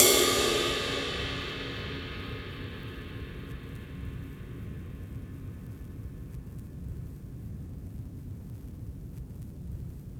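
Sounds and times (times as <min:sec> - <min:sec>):
cymbal: 0:00.0 - 0:05.9.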